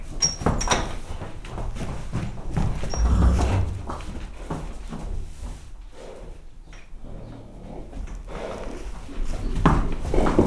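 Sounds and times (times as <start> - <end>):
tied horse hoof steps in a stable on a farmyard: 0.4 - 4.6, 9.4 - 10.4.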